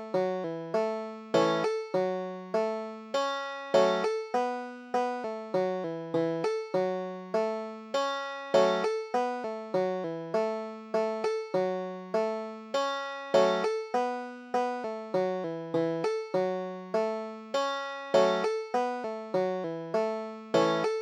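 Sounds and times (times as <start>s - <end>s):
banjo tune: 0.0s - 21.0s.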